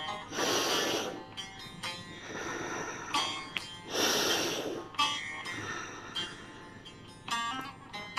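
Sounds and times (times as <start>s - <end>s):
slow deep breathing through the nose: 0.2s - 6.9s.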